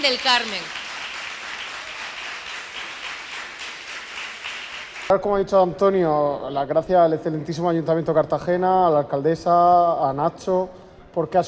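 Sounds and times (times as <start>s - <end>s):
speech: 0.0s - 0.8s, 5.1s - 11.4s
audience applause: 0.0s - 5.1s.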